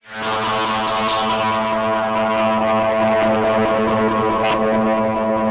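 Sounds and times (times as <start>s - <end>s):
synth: 0.0s - 5.4s.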